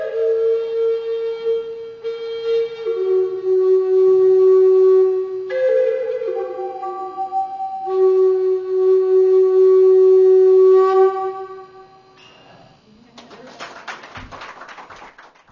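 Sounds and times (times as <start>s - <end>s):
native American flute demonstration: 0.0s - 12.2s.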